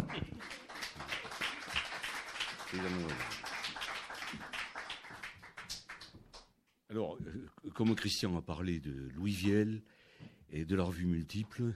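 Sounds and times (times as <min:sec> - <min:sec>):
audience applause: 0:00.0 - 0:06.1
speech: 0:02.7 - 0:03.4, 0:06.9 - 0:11.7.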